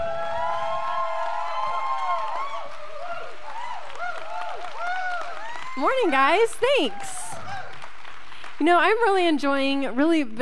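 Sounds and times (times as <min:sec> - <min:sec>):
audience cheering: 0:00.0 - 0:08.2
audience applause: 0:00.0 - 0:09.2
speech: 0:05.8 - 0:07.3, 0:08.6 - 0:10.4.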